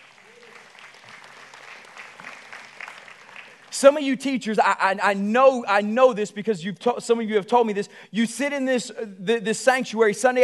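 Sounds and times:
audience applause: 0.0 - 3.8
speech: 3.8 - 10.4.

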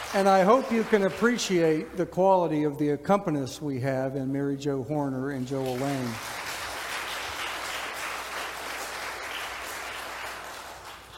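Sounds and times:
audience applause: 0.0 - 1.8, 5.6 - 11.1
speech: 0.1 - 6.4.

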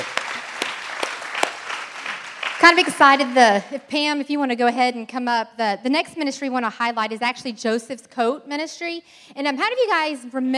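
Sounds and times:
audience applause: 0.0 - 3.3
speech: 2.6 - 10.5.

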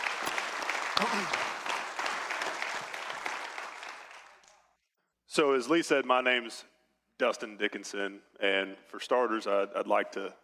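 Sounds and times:
audience applause: 0.0 - 4.7
speech: 1.0 - 1.4, 5.4 - 10.4.

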